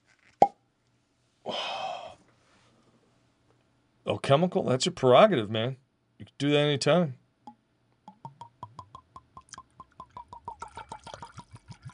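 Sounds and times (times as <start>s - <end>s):
speech: 4.1s - 7.2s
cork pop: 7.5s - 11.2s
liquor pouring into a glass: 8.1s - 11.9s.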